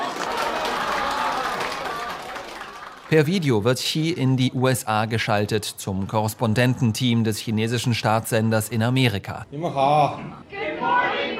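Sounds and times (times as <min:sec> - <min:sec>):
staff clapping enthusiastically: 0:00.0 - 0:03.7
speech: 0:03.1 - 0:10.6.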